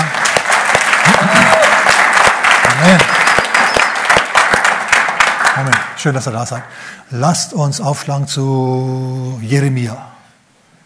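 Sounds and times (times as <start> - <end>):
audience clapping: 0.0 - 6.8
speech: 6.0 - 10.1.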